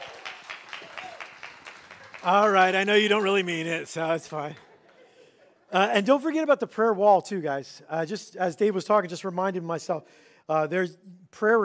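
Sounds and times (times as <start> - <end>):
audience applause: 0.0 - 5.0
speech: 2.2 - 4.7, 5.7 - 11.6.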